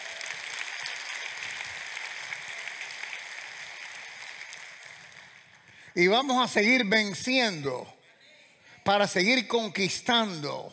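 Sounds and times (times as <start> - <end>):
audience applauding: 0.0 - 6.4
speech: 6.0 - 8.0, 8.8 - 10.7.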